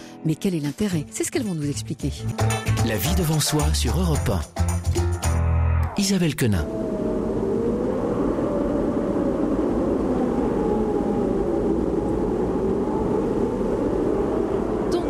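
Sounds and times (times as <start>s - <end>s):
speech: 0.2s - 5.0s, 6.0s - 7.1s
strong wind blowing: 6.3s - 15.0s.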